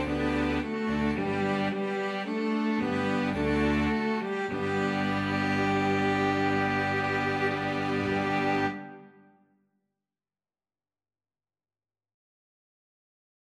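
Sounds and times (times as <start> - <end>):
flexible mixed ensemble playing: 0.0 - 9.2.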